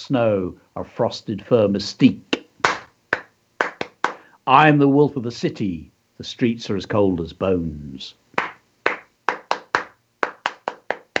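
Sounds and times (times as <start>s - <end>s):
speech: 0.0s - 2.3s, 4.5s - 8.2s
gentle rhythmic hand clapping: 2.3s - 4.3s, 8.4s - 11.1s.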